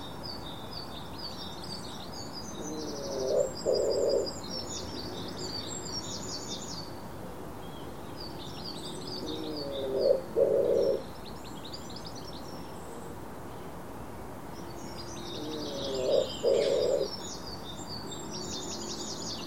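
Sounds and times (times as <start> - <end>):
bird hooting: 2.7 - 4.3, 9.3 - 11.0, 15.4 - 17.1.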